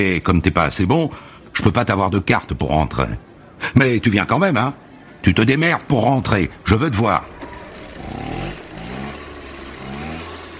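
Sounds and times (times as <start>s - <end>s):
speech: 0.0s - 7.4s
Mobylette moped engine revving: 6.8s - 10.5s.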